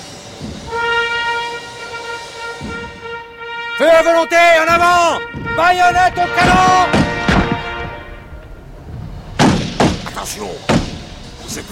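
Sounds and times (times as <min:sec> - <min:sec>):
bugle sounding the charge: 0:00.6 - 0:08.7
speech: 0:03.8 - 0:07.0, 0:10.2 - 0:10.8, 0:11.5 - 0:11.7.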